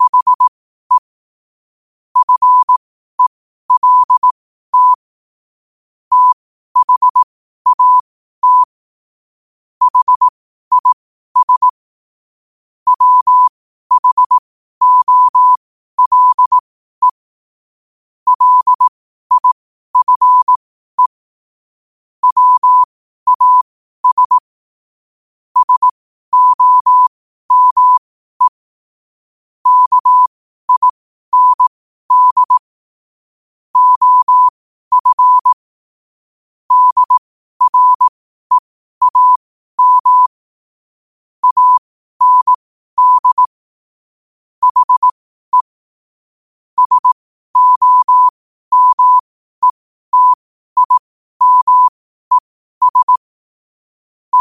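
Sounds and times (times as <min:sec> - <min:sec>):
morse code at 5 wpm: 0:00.0 - 0:01.1, 0:02.2 - 0:05.0, 0:06.1 - 0:08.7, 0:09.8 - 0:11.8, 0:12.9 - 0:17.2, 0:18.3 - 0:21.2, 0:22.2 - 0:24.4, 0:25.6 - 0:28.6, 0:29.6 - 0:32.7, 0:33.8 - 0:35.6, 0:36.7 - 0:40.4, 0:41.4 - 0:43.6, 0:44.6 - 0:45.7, 0:46.8 - 0:53.3.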